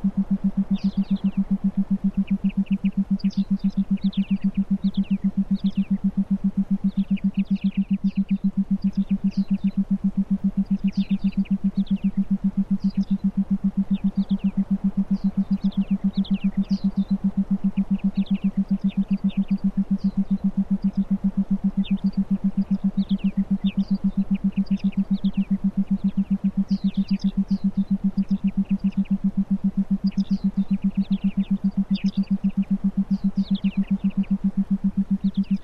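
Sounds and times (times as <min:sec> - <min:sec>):
forest ambience: 0:00.0 - 0:35.6
theta binaural beats for meditation: 0:00.0 - 0:35.6.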